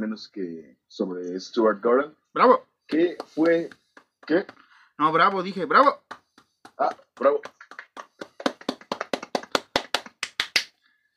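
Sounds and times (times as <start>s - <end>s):
speech: 0.0s - 6.1s, 6.8s - 7.6s
hand clapping applause: 2.9s - 10.8s.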